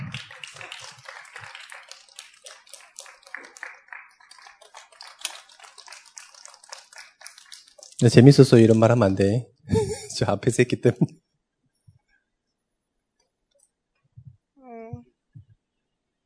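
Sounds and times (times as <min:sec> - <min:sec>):
group clapping: 0:00.0 - 0:09.2
speech: 0:08.0 - 0:09.5, 0:10.2 - 0:11.2
laughter: 0:09.7 - 0:11.1.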